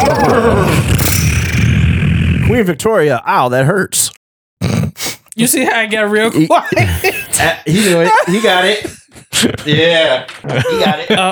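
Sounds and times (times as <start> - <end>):
person imitating a horse whinny: 0.0 - 1.7
speech: 2.6 - 11.3
laughter: 6.4 - 11.3.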